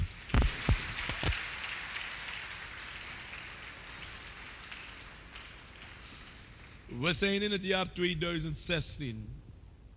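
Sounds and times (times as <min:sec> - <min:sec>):
audience applause: 0:00.0 - 0:06.3
speech: 0:07.0 - 0:09.4.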